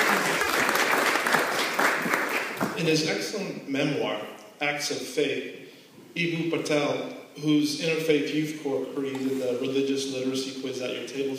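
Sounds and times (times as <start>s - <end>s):
audience applause welcoming a speaker at a dinner event: 0.0s - 2.8s
speech: 2.8s - 11.3s.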